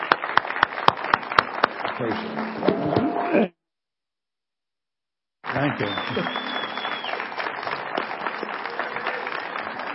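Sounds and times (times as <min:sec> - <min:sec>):
audience applauding: 0:00.0 - 0:03.4, 0:05.4 - 0:09.9
speech: 0:02.0 - 0:03.6, 0:05.6 - 0:06.5.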